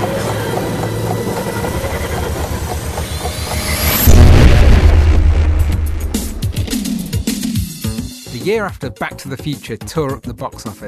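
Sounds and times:
sci-fi time machine high whine: 0.8s - 7.7s
sci-fi time machine firing up: 1.7s - 7.5s
speech: 8.5s - 10.8s.

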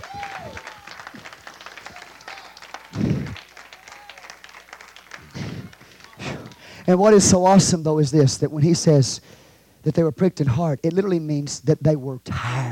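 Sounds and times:
audience hand clapping: 0.0s - 7.5s
speech: 6.9s - 12.7s.

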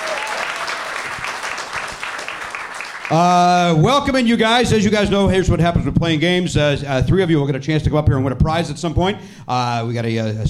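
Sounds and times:
game show audience applauding a performer: 0.0s - 3.6s
speech: 3.1s - 10.4s.

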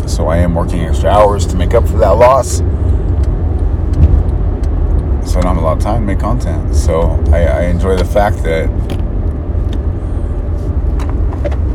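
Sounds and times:
car road rumble while driving to a doctor's appointment: 0.0s - 11.7s
speech: 0.2s - 3.0s, 5.4s - 8.9s.

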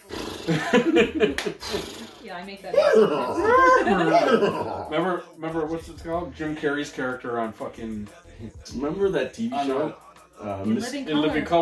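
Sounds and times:
breathy snort: 0.0s - 0.8s, 1.6s - 2.3s
laughter: 0.4s - 2.0s, 2.8s - 4.9s
speech: 0.5s - 11.6s
person imitating a horse whinny: 1.8s - 4.9s.

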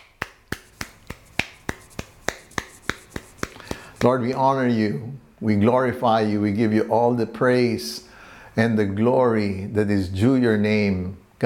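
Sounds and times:
audience clapping: 0.0s - 4.1s
speech: 4.0s - 11.4s.

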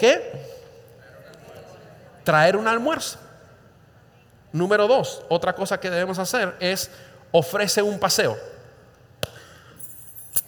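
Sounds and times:
speech: 0.0s - 0.4s, 2.3s - 3.2s, 4.5s - 8.6s
keys jingling: 9.8s - 10.4s.

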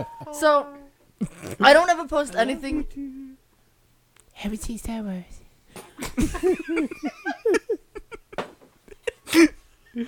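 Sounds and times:
speech: 0.0s - 3.2s, 4.4s - 7.8s
gulping sounds: 1.2s - 1.6s
weird burp: 1.2s - 1.6s
laughter: 6.0s - 9.2s.

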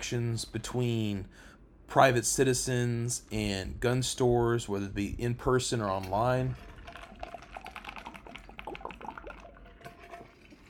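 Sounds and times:
speech: 0.1s - 6.7s
person sipping a drink: 6.5s - 10.6s
faint swallow: 6.6s - 10.6s.

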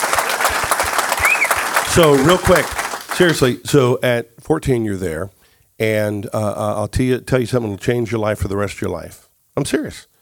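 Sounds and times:
audience applause: 0.0s - 3.6s
speech: 2.0s - 10.1s.

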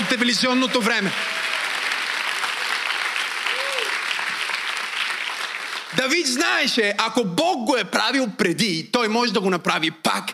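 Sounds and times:
large audience applause: 0.0s - 6.4s
speech: 0.1s - 1.5s, 6.0s - 10.3s.

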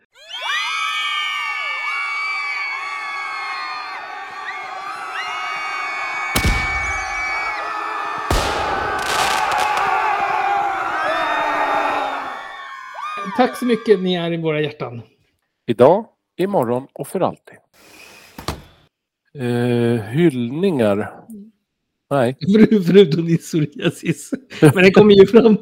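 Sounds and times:
crowd cheering and whooping: 0.0s - 14.1s
speech: 13.4s - 18.0s, 19.4s - 21.5s, 22.1s - 25.5s.

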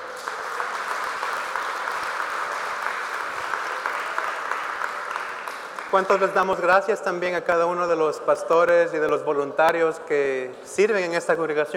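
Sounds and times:
audience clapping: 0.0s - 7.1s
speech: 5.9s - 11.7s.

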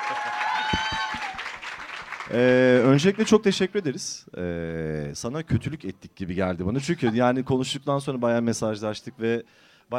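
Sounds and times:
applause: 0.0s - 3.5s
speech: 0.1s - 1.0s, 2.3s - 9.9s.

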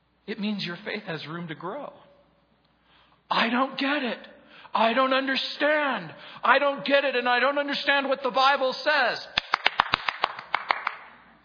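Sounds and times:
speech: 0.3s - 2.0s, 3.3s - 9.4s
audience hand clapping: 9.4s - 11.2s.

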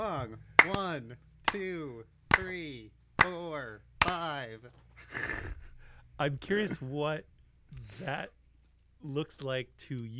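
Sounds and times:
speech: 0.2s - 5.6s, 6.2s - 8.4s, 9.0s - 10.1s
hands clapping: 0.6s - 4.4s.

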